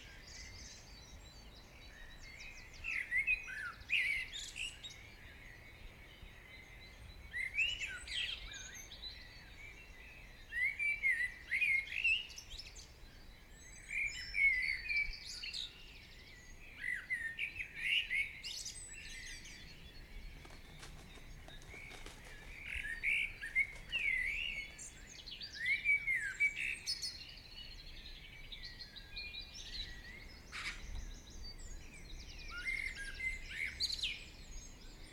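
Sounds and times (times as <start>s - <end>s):
morning birdsong: 0.0s - 35.1s.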